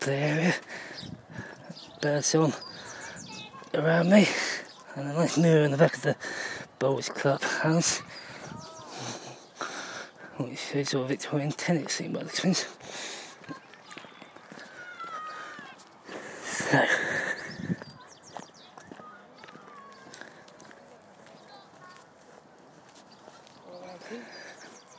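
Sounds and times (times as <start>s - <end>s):
speech: 0.0s - 1.4s, 2.0s - 2.7s, 3.7s - 8.7s, 10.4s - 13.1s
footsteps walking down a hill in a park: 12.8s - 16.3s, 17.0s - 24.9s.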